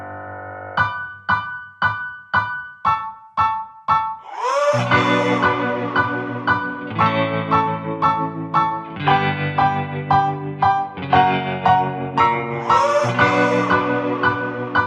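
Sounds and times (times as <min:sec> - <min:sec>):
piano: 0:00.0 - 0:14.8
vocal shout: 0:04.3 - 0:06.4, 0:12.6 - 0:14.3
guitars: 0:04.8 - 0:14.8.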